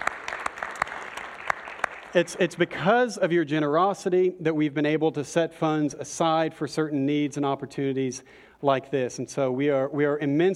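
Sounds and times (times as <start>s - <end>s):
audience applause: 0.0s - 2.6s
speech: 2.1s - 10.5s.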